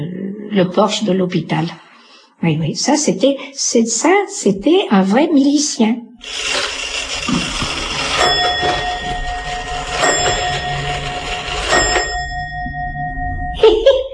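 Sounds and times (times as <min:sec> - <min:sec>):
speech: 0:00.0 - 0:08.6
old Swiss pendulum clock chiming: 0:06.2 - 0:14.1.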